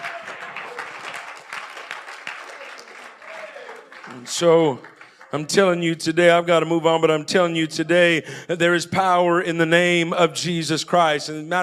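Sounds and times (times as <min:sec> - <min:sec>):
audience clapping hands: 0:00.0 - 0:05.8
speech: 0:04.1 - 0:11.6.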